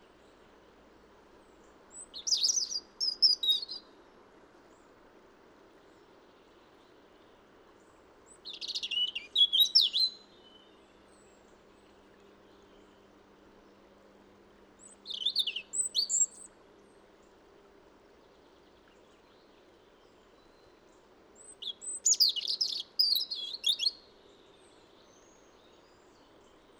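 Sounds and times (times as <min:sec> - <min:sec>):
soft steady hiss: 0:00.0 - 0:26.7
European robin singing: 0:01.9 - 0:03.8, 0:08.3 - 0:10.8, 0:14.8 - 0:16.6, 0:21.4 - 0:26.7.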